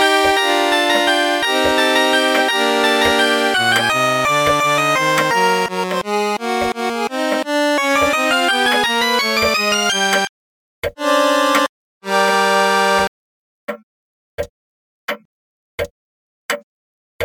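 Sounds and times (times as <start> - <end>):
chiptune bells melody: 0.0 - 10.3, 11.0 - 13.1.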